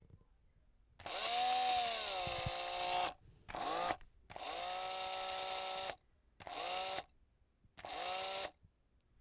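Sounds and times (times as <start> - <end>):
drill: 1.0 - 7.1, 7.8 - 8.6.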